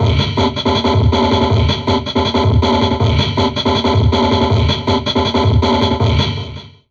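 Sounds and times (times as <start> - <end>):
heavily processed drum loop: 0.0 - 6.9.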